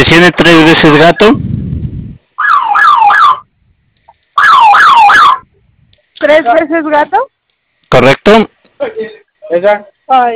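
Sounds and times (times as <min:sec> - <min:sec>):
speech: 0:00.0 - 0:01.6, 0:06.2 - 0:10.3
security alarm system electronic siren: 0:02.4 - 0:03.5, 0:04.4 - 0:05.5.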